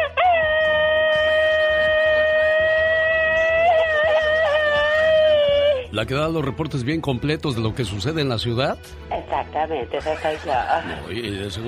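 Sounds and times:
voice imitating a machine-gun scream: 0.0 - 5.9
speech: 6.0 - 11.6
laughter: 9.1 - 11.4.

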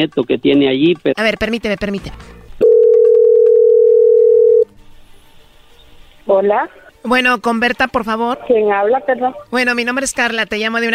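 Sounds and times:
speech: 0.0 - 2.4, 6.3 - 10.9
telephone dial tone while calling: 2.6 - 4.6.

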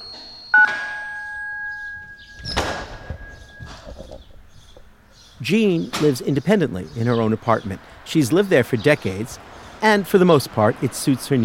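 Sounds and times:
door entry buzzer: 0.0 - 4.2
sharp clunk: 0.2 - 4.3
speech: 5.5 - 11.4.

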